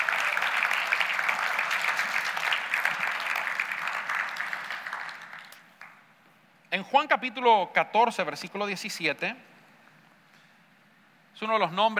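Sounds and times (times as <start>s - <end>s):
audience applause: 0.0s - 6.0s
speech: 6.8s - 9.5s, 11.4s - 11.9s.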